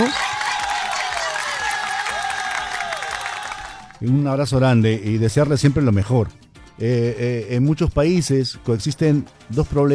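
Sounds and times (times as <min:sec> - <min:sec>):
crowd applause: 0:00.0 - 0:04.0
speech: 0:04.0 - 0:09.9.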